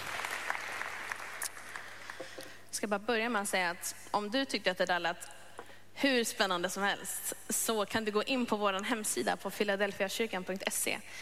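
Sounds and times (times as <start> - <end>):
audience applause: 0.0 - 2.2
speech: 2.8 - 5.4, 6.0 - 11.2.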